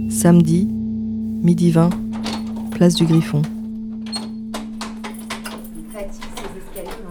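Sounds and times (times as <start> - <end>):
speech: 0.2 - 0.7, 1.4 - 2.1, 2.8 - 3.5
key turning and scraping in a stiff door lock: 1.9 - 7.0.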